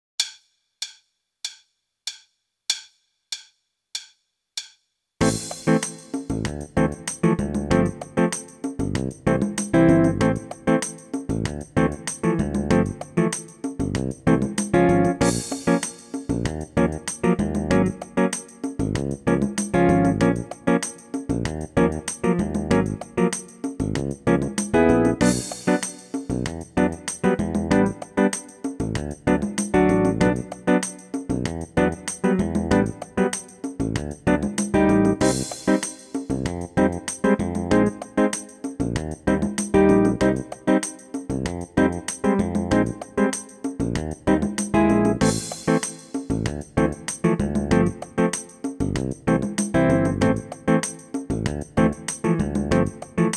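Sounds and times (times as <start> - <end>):
open hi-hat: 5.2 - 53.3.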